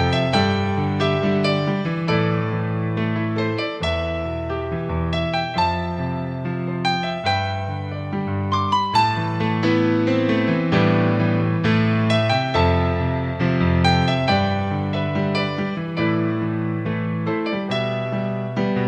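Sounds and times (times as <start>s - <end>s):
piano: 0.0s - 18.8s.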